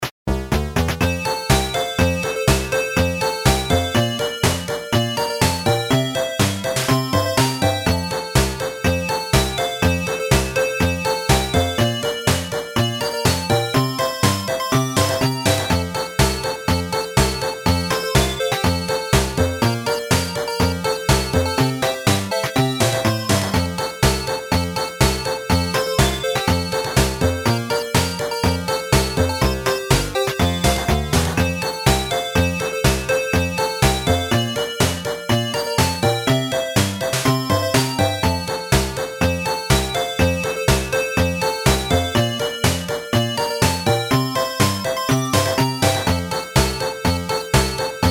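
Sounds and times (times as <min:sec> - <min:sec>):
8-bit chiptune Christmas song: 0:00.3 - 0:48.0.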